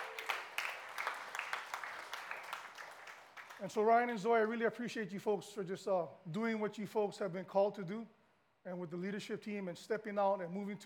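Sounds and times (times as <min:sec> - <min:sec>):
audience applause: 0:00.0 - 0:03.6
speech: 0:03.6 - 0:10.8.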